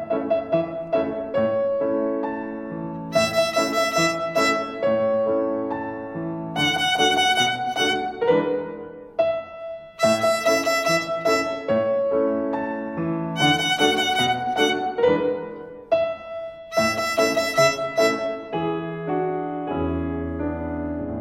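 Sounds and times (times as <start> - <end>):
violin rhythm: 0.1 - 21.1.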